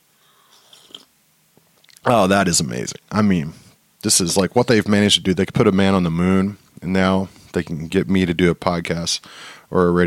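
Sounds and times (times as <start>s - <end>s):
quiet slurp of coffee: 0.4s - 1.1s
speech: 2.0s - 10.0s.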